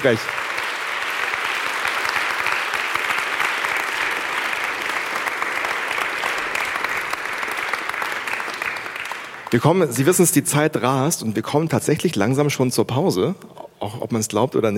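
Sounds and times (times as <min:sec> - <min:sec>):
speech: 0:00.0 - 0:00.4, 0:09.5 - 0:14.7
audience applause: 0:00.0 - 0:09.7.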